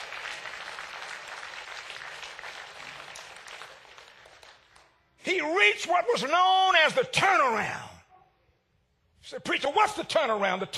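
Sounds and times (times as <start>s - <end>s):
audience clapping hands: 0.0s - 5.1s
speech: 5.2s - 7.9s, 9.3s - 10.7s.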